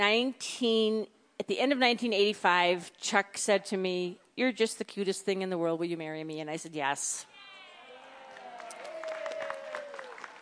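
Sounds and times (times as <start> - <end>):
speech: 0.0 - 7.3
one person clapping hands: 8.3 - 10.3.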